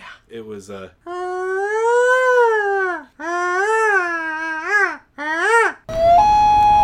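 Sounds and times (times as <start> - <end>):
speech: 0.3 - 1.2
voice imitating a loon call: 1.1 - 6.5.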